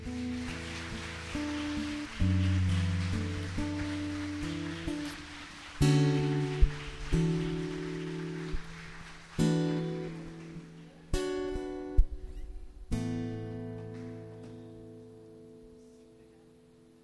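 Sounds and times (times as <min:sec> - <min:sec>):
audience applauding: 0:00.0 - 0:12.4.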